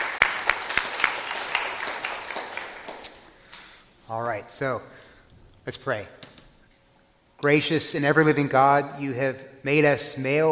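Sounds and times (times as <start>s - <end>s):
group clapping: 0.0s - 3.8s
speech: 4.1s - 5.0s, 5.6s - 6.2s, 7.4s - 10.5s.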